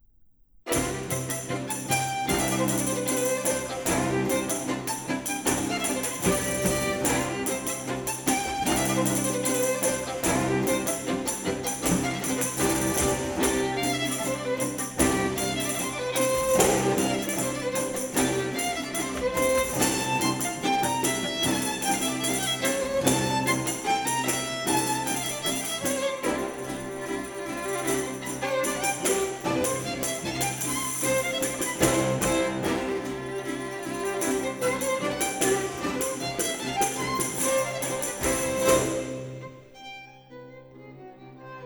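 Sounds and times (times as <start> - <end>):
tambourin dance music: 0.7 - 39.6.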